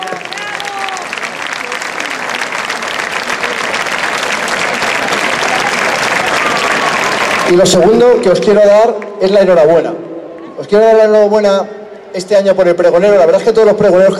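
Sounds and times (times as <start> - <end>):
audience applause: 0.0 - 8.0
speech: 7.5 - 10.0, 10.6 - 14.1.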